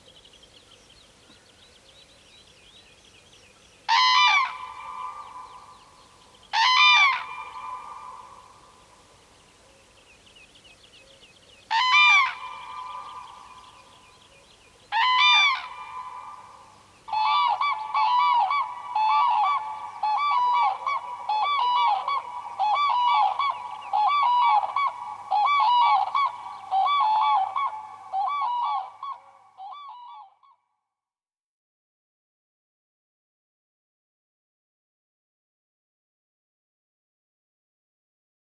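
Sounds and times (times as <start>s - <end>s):
Common crane bugling calls: 3.9s - 5.7s, 6.5s - 8.6s, 11.7s - 13.7s, 14.9s - 30.4s.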